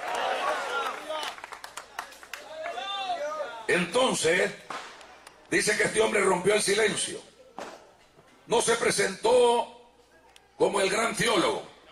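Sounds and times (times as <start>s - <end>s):
audience applauding: 0.0s - 3.4s
speech: 3.7s - 4.7s, 5.5s - 7.3s, 8.5s - 9.8s, 10.6s - 11.7s.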